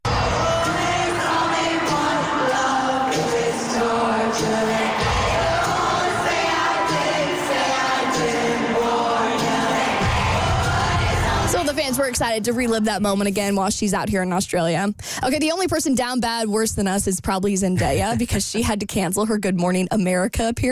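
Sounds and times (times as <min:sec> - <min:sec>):
stadium pop concert audience cheering in Sydney: 0:00.0 - 0:12.8
speech: 0:12.1 - 0:20.7.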